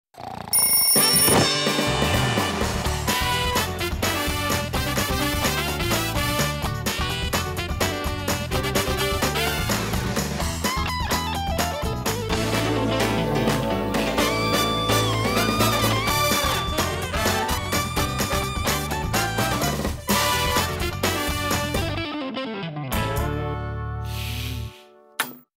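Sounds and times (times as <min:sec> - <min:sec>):
opening theme music: 0:01.0 - 0:24.5.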